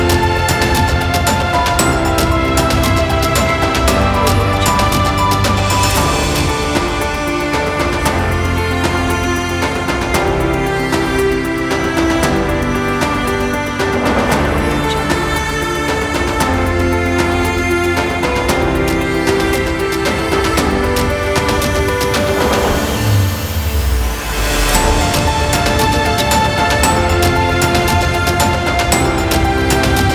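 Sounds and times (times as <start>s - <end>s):
epic motivational cinematic music: 0.0s - 30.1s.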